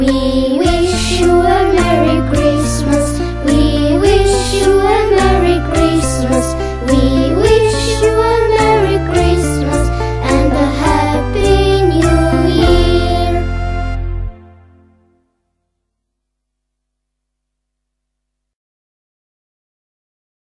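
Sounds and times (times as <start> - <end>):
christmas song: 0.0 - 15.8.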